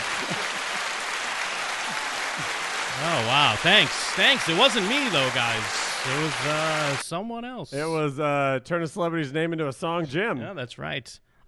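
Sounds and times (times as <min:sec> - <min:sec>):
room clapping all at once: 0:00.0 - 0:07.0
speech: 0:03.0 - 0:11.4.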